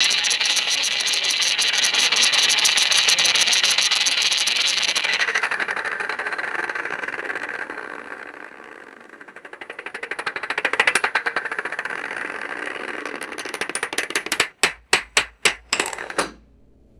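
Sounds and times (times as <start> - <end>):
roulette ball spinning and landing: 0.0 - 16.9.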